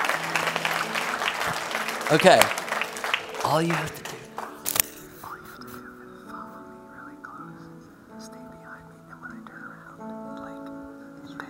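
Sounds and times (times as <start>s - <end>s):
round of applause: 0.0s - 5.0s
speech: 1.5s - 2.6s, 3.4s - 4.1s.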